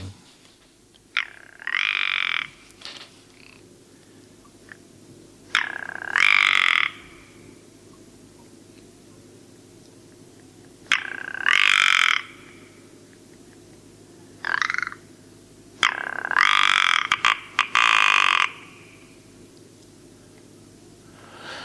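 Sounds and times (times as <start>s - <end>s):
faint steady hiss: 0.0s - 21.6s
ptarmigan giving hoarse grating croaks: 1.1s - 2.7s, 3.3s - 3.8s, 5.5s - 7.6s, 10.8s - 12.9s, 14.3s - 15.2s, 15.8s - 19.2s.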